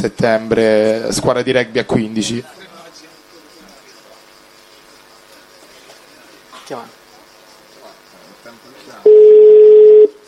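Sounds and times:
speech: 0.0 - 2.6
low murmured talk: 0.0 - 9.1
WhatsApp call ringing tone beep: 9.1 - 10.2.

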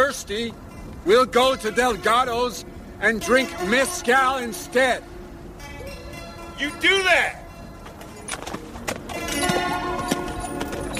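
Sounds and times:
speech: 0.1 - 5.1, 6.6 - 7.4
horse hooves clip-clopping as rider wheels the horse around: 7.8 - 10.9.

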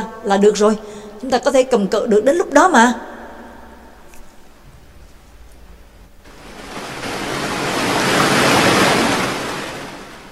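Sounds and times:
speech: 0.2 - 3.1
ocean waves crashing: 6.3 - 10.3.

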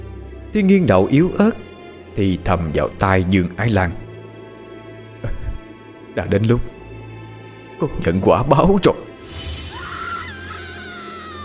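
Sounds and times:
speech: 0.5 - 4.0, 6.2 - 6.8, 7.8 - 9.4
ghostly woman's scream: 9.6 - 11.4.

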